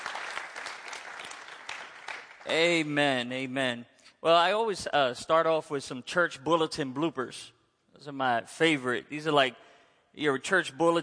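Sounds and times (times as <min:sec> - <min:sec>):
audience clapping hands: 0:00.0 - 0:03.0
speech: 0:02.5 - 0:11.0.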